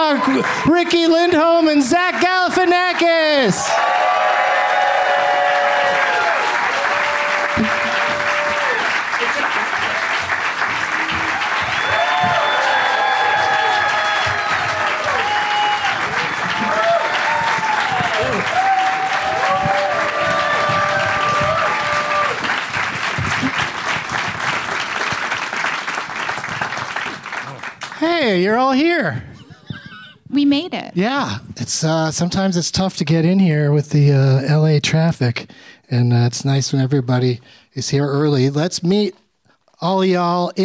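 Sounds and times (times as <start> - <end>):
crowd whooping and cheering: 0.0 - 25.4
crowd applauding: 0.0 - 29.1
speech: 0.2 - 4.4, 28.3 - 29.3, 30.4 - 39.2, 39.8 - 40.6.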